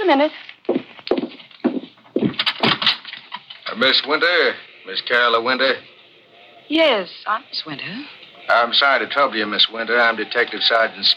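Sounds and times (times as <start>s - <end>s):
speech: 0.1s - 0.6s, 3.8s - 5.9s, 6.7s - 11.1s
knocking on a door: 0.7s - 2.9s.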